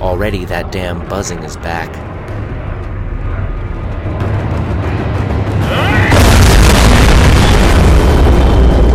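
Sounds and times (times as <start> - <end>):
speech: 0.1 - 2.1
battleship's 18-inch guns firing skyward: 4.3 - 8.8.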